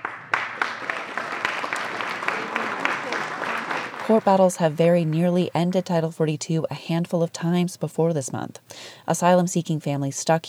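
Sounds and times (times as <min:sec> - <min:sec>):
round of applause: 0:00.0 - 0:05.2
speech: 0:04.1 - 0:10.4.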